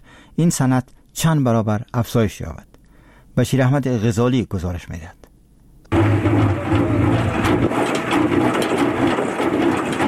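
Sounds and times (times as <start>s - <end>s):
speech: 0.4s - 2.7s, 3.4s - 5.2s
honey extractor machine running: 5.9s - 10.0s.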